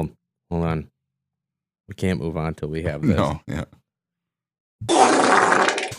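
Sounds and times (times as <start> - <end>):
speech: 0.0 - 0.9, 1.9 - 3.8, 4.8 - 5.4
wet fart: 4.8 - 5.9.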